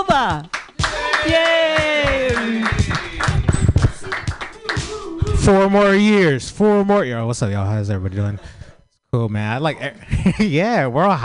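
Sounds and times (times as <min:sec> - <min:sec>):
speech: 0:00.0 - 0:00.6, 0:01.2 - 0:02.8, 0:05.5 - 0:11.2
audience clapping at a stand-up comedy show: 0:00.0 - 0:05.2
voices and cheering: 0:00.8 - 0:06.3.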